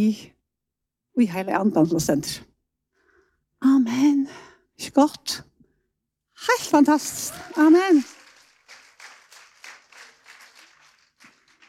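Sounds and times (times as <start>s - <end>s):
speech: 0.0s - 0.4s, 1.2s - 2.5s, 3.6s - 5.5s, 6.4s - 8.2s
audience applause and clapping: 7.0s - 11.6s.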